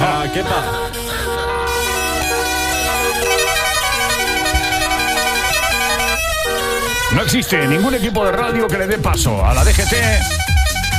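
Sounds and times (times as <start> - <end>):
car horns honking: 0.0 - 10.9
speech: 7.2 - 10.6.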